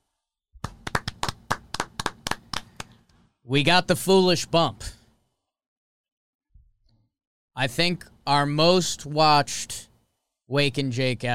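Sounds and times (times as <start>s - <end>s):
clapping: 0.6s - 3.2s
speech: 3.4s - 5.0s, 7.6s - 9.9s, 10.5s - 11.3s.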